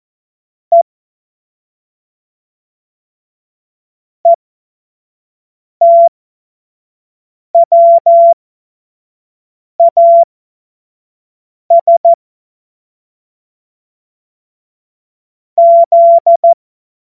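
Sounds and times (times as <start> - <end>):
Morse code course tones: 5.8 - 6.1, 7.6 - 8.4, 11.7 - 12.2, 15.6 - 16.6.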